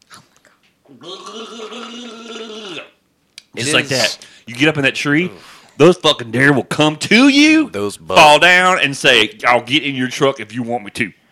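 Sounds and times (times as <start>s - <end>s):
speech: 0.9s - 2.9s, 3.6s - 11.2s
gargling liquid: 0.9s - 3.0s.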